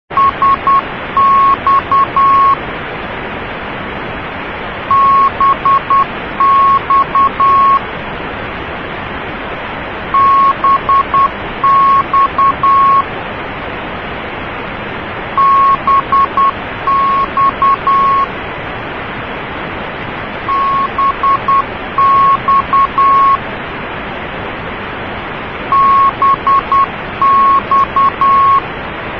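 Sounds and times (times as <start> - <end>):
CW Morse code beeps: 0.1 - 2.6, 4.9 - 7.8, 10.2 - 13.1, 15.4 - 18.3, 20.5 - 23.4, 25.7 - 28.6.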